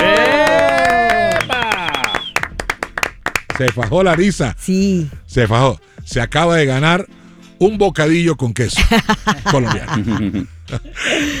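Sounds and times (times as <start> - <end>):
applause for the engineer: 0.0 - 4.2
laughter: 0.0 - 4.3, 8.6 - 11.3
speech: 3.6 - 11.3.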